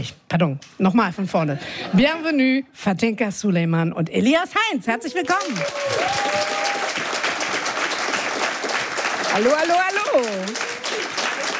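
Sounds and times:
speech: 0:00.0 - 0:06.6, 0:09.3 - 0:10.7
studio audience applause welcoming arriving guests: 0:05.2 - 0:11.5.

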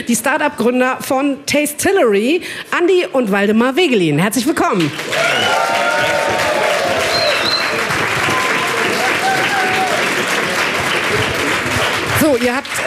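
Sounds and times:
speech: 0:00.0 - 0:06.1, 0:12.3 - 0:12.8
loud sustained audience applause: 0:04.9 - 0:12.8
faint audience cheers and whoops: 0:05.1 - 0:10.3.

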